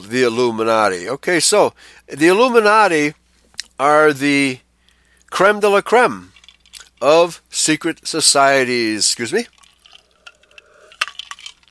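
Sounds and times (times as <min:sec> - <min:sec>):
speech: 0:00.0 - 0:03.2, 0:03.8 - 0:04.6, 0:05.3 - 0:06.3, 0:07.0 - 0:09.6
water poured into a glass: 0:09.5 - 0:11.6.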